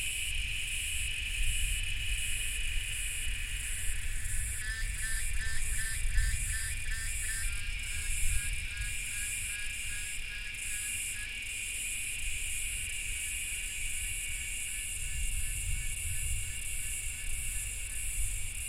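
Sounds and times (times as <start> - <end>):
cicadas buzzing chorus: 0.0 - 18.6.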